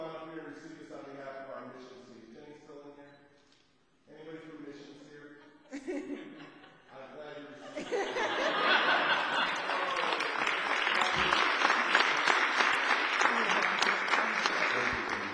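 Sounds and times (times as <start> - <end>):
laughter: 4.8 - 15.3
crowd applause: 7.8 - 15.3.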